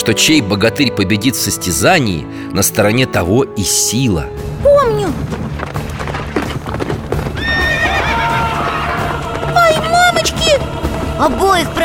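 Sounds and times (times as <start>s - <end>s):
speech: 0.0s - 5.4s, 11.2s - 11.8s
galloping horses hoofbeats: 4.7s - 11.8s
horse whinny: 7.3s - 9.1s.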